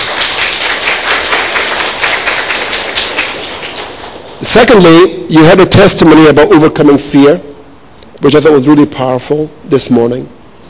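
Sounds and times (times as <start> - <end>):
crowd applauding for a boy: 0.0 - 4.4
speech: 4.4 - 7.5, 8.2 - 10.4.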